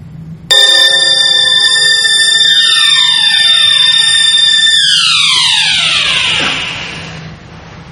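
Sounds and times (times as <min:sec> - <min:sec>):
alarm clock ringing: 0:00.5 - 0:07.2.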